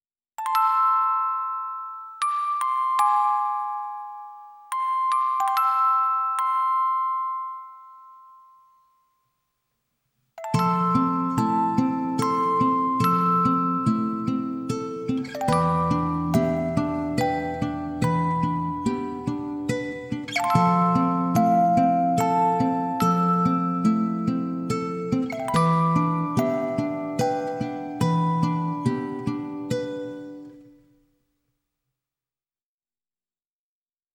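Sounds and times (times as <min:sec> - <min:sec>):
music box: 0:00.4 - 0:09.3, 0:10.4 - 0:30.8
guitar: 0:10.4 - 0:30.8.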